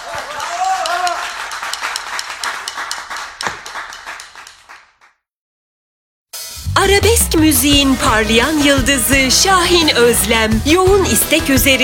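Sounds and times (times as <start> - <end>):
applause: 0.0 - 5.2
speech: 6.8 - 11.8.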